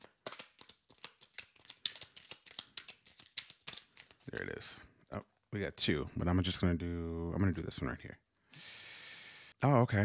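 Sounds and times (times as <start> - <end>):
playing cards handled and drawn from a deck tarot style: 0.0 - 4.6
speech: 4.3 - 8.2, 9.6 - 10.0.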